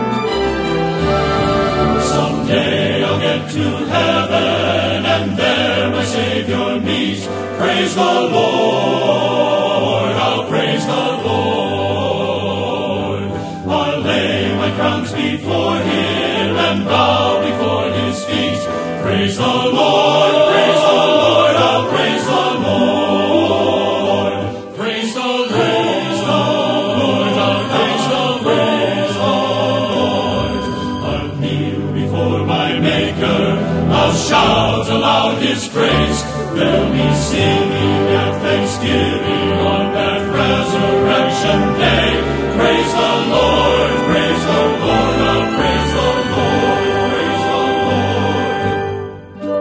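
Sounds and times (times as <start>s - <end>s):
men's choir singing: 0.2s - 49.5s.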